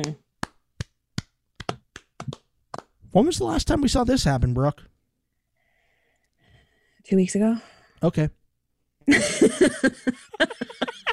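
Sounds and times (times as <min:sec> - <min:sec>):
speech: 0:00.0 - 0:00.2, 0:03.1 - 0:04.9, 0:07.0 - 0:08.4, 0:09.1 - 0:10.9
slow hand claps: 0:00.0 - 0:03.0
laughter: 0:09.1 - 0:11.1.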